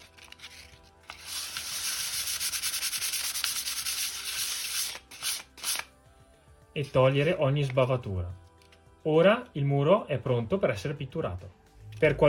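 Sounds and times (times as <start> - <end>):
fine sandpaper rubbing over a wall: 1.1 - 5.8
speech: 6.8 - 8.4, 9.0 - 12.2.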